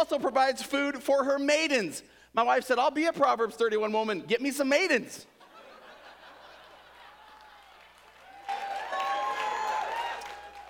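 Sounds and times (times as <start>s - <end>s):
speech: 0.0s - 5.3s
laughter: 5.4s - 7.8s
audience applause: 7.0s - 10.6s.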